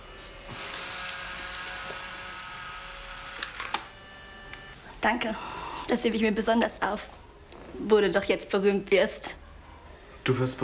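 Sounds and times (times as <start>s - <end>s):
camera shutter clicks taking a farewell photo: 3.3s - 3.9s
speech: 5.0s - 7.2s, 7.8s - 9.4s, 10.3s - 10.6s.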